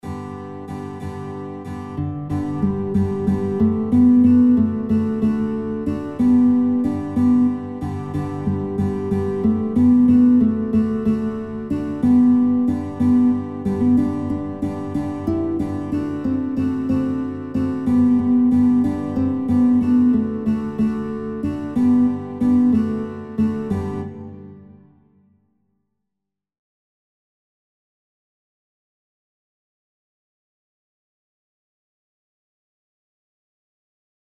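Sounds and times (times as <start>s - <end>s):
guitar playing children's songs: 0.0s - 25.0s.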